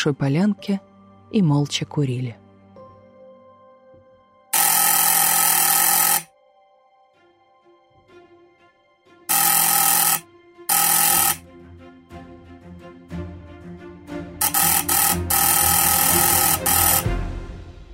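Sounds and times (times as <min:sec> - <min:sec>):
speech: 0:00.0 - 0:02.4
continuous doorbell ringing: 0:04.6 - 0:06.3, 0:09.3 - 0:11.4, 0:14.4 - 0:17.1.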